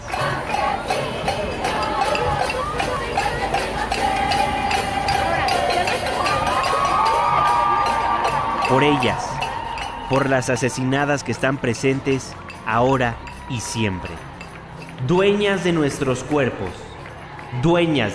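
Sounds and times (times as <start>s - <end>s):
crowd of women chanting in the street: 0.0s - 8.6s
bustle: 0.0s - 18.1s
speech: 8.7s - 9.4s, 10.1s - 14.3s, 15.0s - 16.8s, 17.5s - 18.1s.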